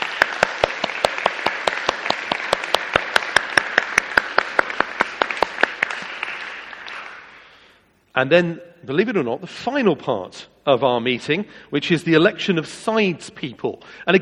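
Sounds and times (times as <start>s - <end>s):
round of applause: 0.0s - 7.7s
speech: 8.2s - 14.1s.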